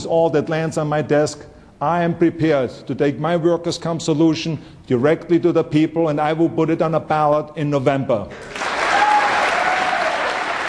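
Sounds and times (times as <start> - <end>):
speech: 0.0 - 8.7
state legislators applauding and cheering during a governor's address: 8.4 - 10.6.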